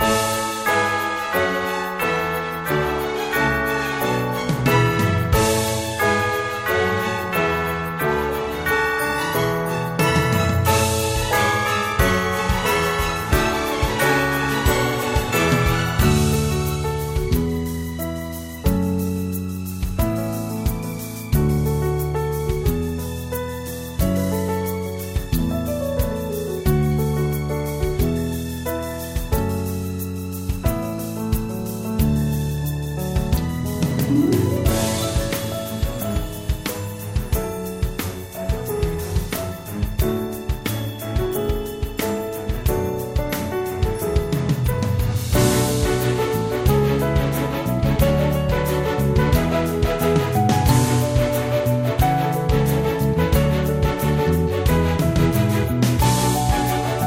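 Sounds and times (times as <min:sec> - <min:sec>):
restaurant background music: 0:00.0 - 0:57.0.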